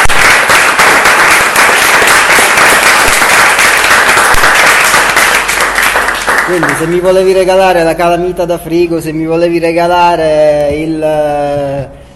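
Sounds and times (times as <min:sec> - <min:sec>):
applause: 0:00.0 - 0:07.4
speech: 0:06.5 - 0:12.0.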